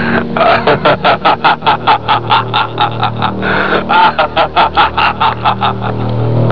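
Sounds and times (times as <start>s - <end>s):
person laughing: 0.0s - 6.4s.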